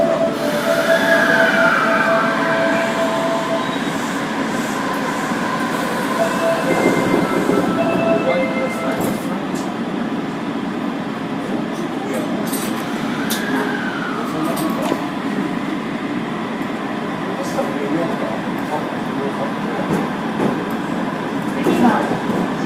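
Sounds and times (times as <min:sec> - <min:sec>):
subway train running on the Imazatosuji line in Osaka: 0:00.0 - 0:22.6
subway train motor rising and falling whines: 0:00.2 - 0:09.0.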